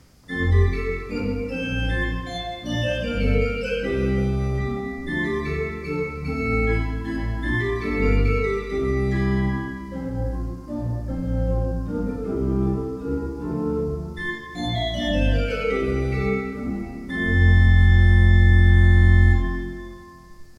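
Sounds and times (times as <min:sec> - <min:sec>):
used Walcker pipe organ: 0:00.0 - 0:20.5.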